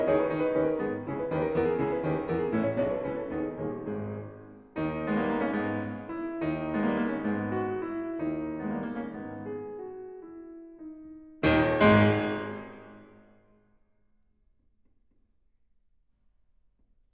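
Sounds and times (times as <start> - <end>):
solo piano prelude in G sharp minor, presto: 0.0 - 13.2.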